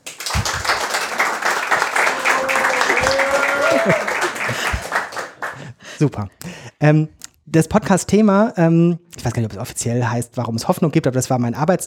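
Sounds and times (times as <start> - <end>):
live audience applauding: 0.0 - 5.7
laughter: 0.2 - 5.6
speech: 6.0 - 11.8.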